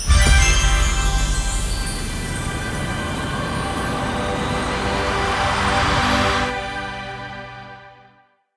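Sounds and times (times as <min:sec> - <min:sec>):
near win riser sound effect: 0:00.0 - 0:07.7.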